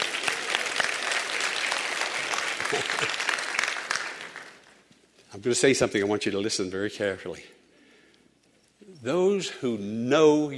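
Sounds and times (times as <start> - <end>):
audience applause: 0.0 - 4.8
speech: 2.7 - 3.3, 5.3 - 7.6, 9.0 - 10.5.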